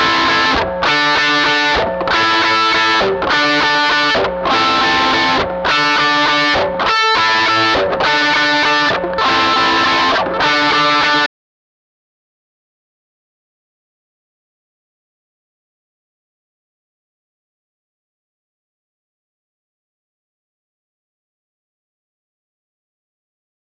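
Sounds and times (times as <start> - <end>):
electric guitar through studio preamp: 0.0 - 11.3.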